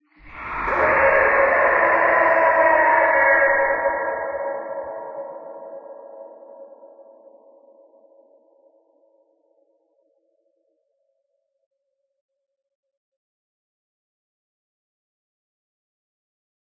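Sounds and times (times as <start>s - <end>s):
forest scream: 0.2s - 6.8s.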